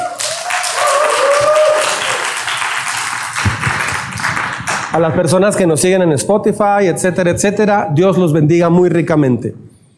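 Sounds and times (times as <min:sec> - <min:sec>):
high cheer or whistle: 0:00.0 - 0:02.4
crowd giving welcoming applause: 0:00.0 - 0:05.1
speech: 0:05.0 - 0:09.7.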